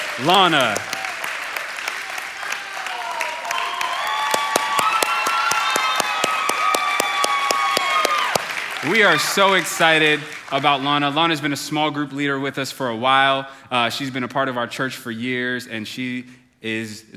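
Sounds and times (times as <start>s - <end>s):
crowd whooping and cheering: 0.0s - 10.3s
audience clapping: 0.0s - 11.6s
speech: 0.2s - 0.9s, 8.8s - 17.1s.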